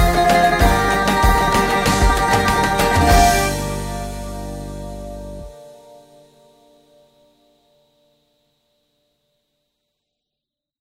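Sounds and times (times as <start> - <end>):
Greek bouzouki playing rouba: 0.0 - 5.5.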